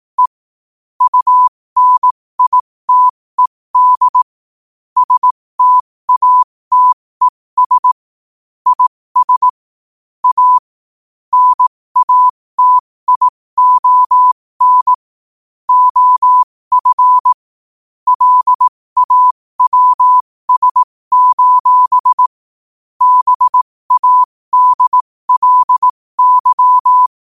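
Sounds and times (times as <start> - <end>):
morse code at 5 wpm: 1.0 - 4.3, 5.0 - 8.0, 8.7 - 9.6, 10.2 - 10.6, 11.3 - 15.0, 15.7 - 17.4, 18.1 - 22.3, 23.0 - 27.2.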